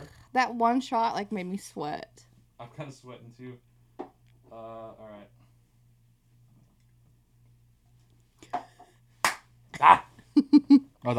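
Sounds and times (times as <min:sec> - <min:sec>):
faint low hum: 0:00.0 - 0:11.1
speech: 0:00.4 - 0:03.7, 0:04.5 - 0:05.4, 0:09.8 - 0:11.1
hand claps: 0:08.5 - 0:09.5.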